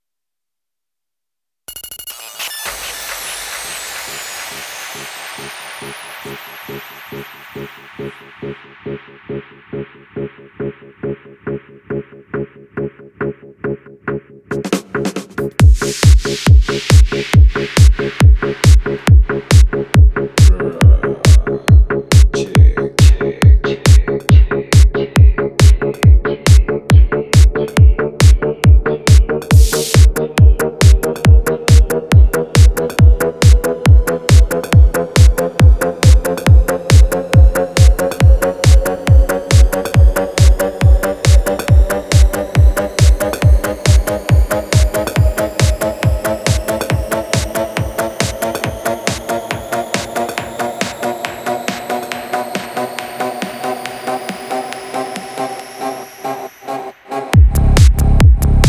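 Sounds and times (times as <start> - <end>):
trap remix: 15.6 - 58.6.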